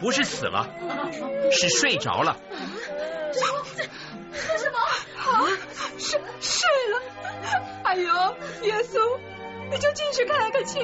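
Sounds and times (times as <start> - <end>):
speech: 0.0 - 10.8
people crying for a child thought dead: 0.1 - 7.8.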